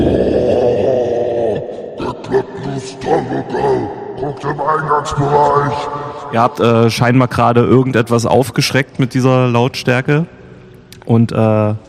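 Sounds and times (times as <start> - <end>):
short guttural grunts: 0.0 - 4.4
person imitating an angry deep growl: 0.0 - 5.1
speech: 2.8 - 10.4, 11.1 - 11.8.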